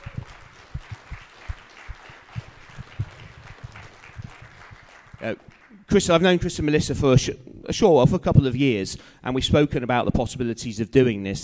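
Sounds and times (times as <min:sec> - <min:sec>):
crowd applauding: 0:00.0 - 0:06.2
speech: 0:05.2 - 0:11.4.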